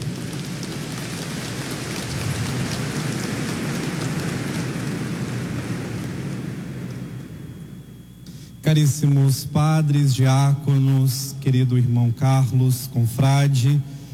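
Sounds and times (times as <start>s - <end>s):
audience applause: 0.0s - 7.2s
speech: 8.7s - 14.0s.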